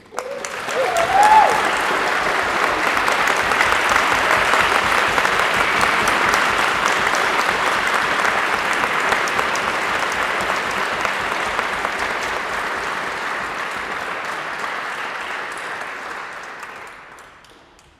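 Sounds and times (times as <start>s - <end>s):
people clapping at a wedding: 0.0s - 17.9s.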